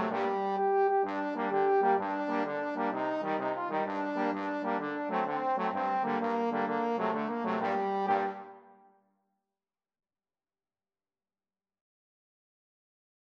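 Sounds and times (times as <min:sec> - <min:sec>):
trombone quartet: 0:00.0 - 0:08.6.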